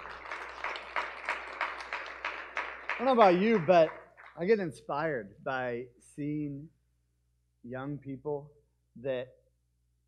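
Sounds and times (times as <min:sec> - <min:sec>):
quiet audience applause in a steady rhythm: 0:00.0 - 0:04.6
speech: 0:03.0 - 0:06.8, 0:07.6 - 0:09.4.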